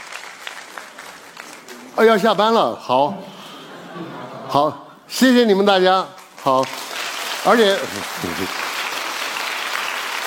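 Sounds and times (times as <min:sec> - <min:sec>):
audience applause: 0:00.0 - 0:02.2, 0:06.2 - 0:10.2
speech: 0:02.0 - 0:03.3, 0:04.0 - 0:06.8, 0:07.4 - 0:08.6
laughter: 0:03.1 - 0:05.0, 0:07.9 - 0:08.6.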